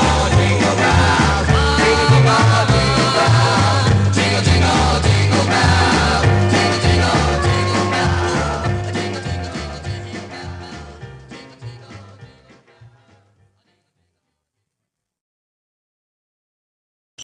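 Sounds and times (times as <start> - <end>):
music with stomping beat: 0.0 - 12.2.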